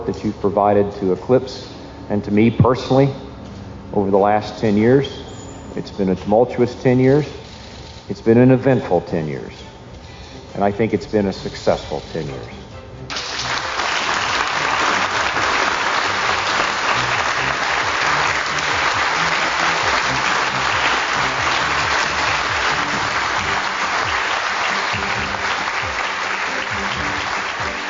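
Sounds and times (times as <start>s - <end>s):
speech: 0.2s - 3.2s, 3.9s - 5.2s, 5.8s - 7.4s, 8.1s - 9.6s, 10.6s - 12.6s
long audience applause: 13.1s - 27.8s.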